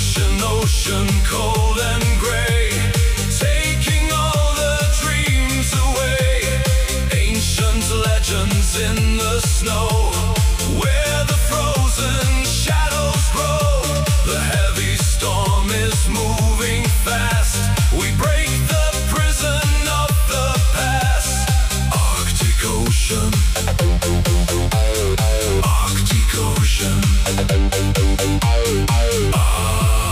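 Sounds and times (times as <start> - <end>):
modern disco style synth pop music: 0.0 - 30.1.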